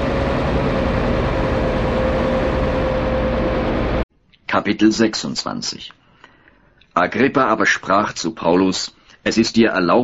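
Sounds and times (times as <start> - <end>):
motor ship's engine rumbling setting off on a sea voyage: 0.0 - 4.1
speech: 4.6 - 6.0, 7.0 - 10.0.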